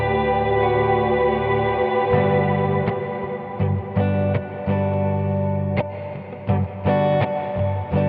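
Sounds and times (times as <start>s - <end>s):
BigSky plate reverb: 0.0s - 7.9s.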